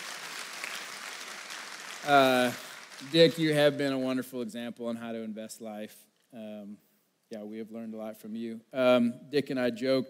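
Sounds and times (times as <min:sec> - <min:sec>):
crowd clapping: 0:00.0 - 0:03.7
speech: 0:02.0 - 0:10.0.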